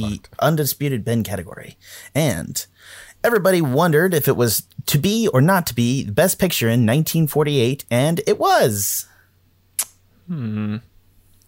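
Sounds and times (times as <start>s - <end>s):
speech: 0.0s - 9.1s, 10.3s - 10.9s
sharp click: 9.8s - 10.0s.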